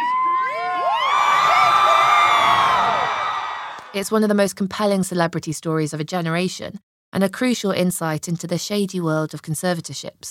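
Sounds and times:
crowd of fans cheering outside the courthouse: 0.0s - 4.0s
high whoops and shrieks: 0.0s - 4.0s
speech: 3.9s - 10.3s.

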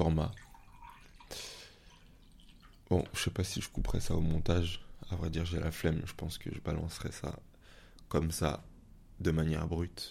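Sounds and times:
water poured into a small glass: 0.0s - 3.3s
speech: 0.1s - 0.5s, 2.9s - 7.5s, 8.1s - 10.0s.

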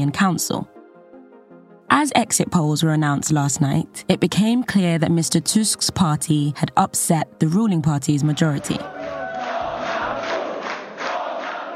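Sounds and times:
speech: 0.0s - 0.8s, 1.9s - 9.2s
crowd of supporters chanting: 8.4s - 11.7s.

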